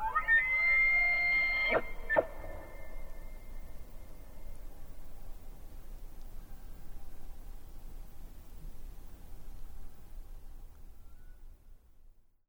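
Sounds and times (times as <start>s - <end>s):
elk bugling during the rut at Yellowstone Lake: 0.0s - 3.0s.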